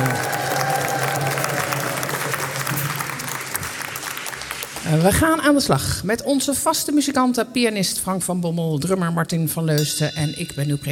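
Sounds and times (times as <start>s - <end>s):
crowd applauding: 0.0s - 5.6s
speech: 4.9s - 10.9s.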